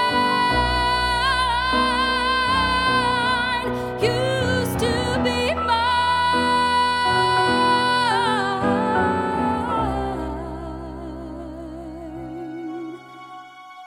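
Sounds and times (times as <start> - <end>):
person singing in English: 0.0 - 13.8.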